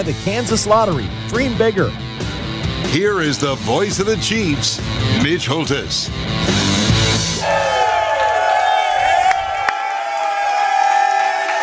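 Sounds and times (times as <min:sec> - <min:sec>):
speech: 0:00.0 - 0:02.1, 0:02.8 - 0:06.6
excited crowd cheering: 0:07.2 - 0:11.6
high whoops and long sustained shouts: 0:07.4 - 0:11.6.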